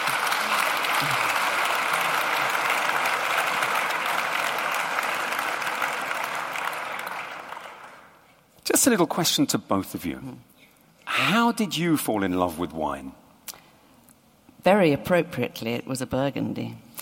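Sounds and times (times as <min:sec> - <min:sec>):
round of applause: 0:00.0 - 0:08.3
speech: 0:08.7 - 0:10.5, 0:11.3 - 0:13.2, 0:14.6 - 0:16.8.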